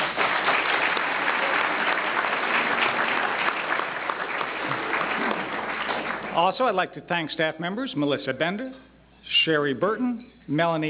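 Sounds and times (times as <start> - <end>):
audience applause: 0.0 - 6.7
speech: 6.4 - 8.8, 9.4 - 10.8.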